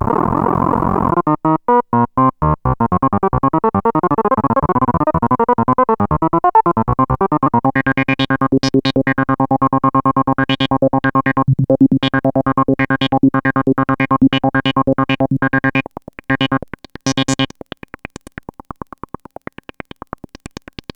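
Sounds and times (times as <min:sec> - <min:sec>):
Moog Micromoog sample and hold synthesizer sound: 0:00.0 - 0:15.8.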